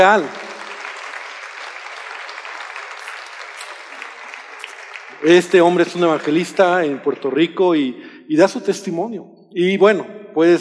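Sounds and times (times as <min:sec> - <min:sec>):
speech: 0:00.0 - 0:00.4, 0:05.2 - 0:10.6
audience applause: 0:00.0 - 0:07.0.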